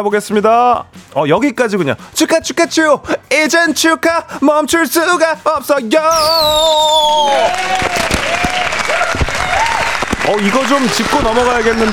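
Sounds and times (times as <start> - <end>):
speech: 0.0 - 11.9
fireworks: 6.2 - 11.9.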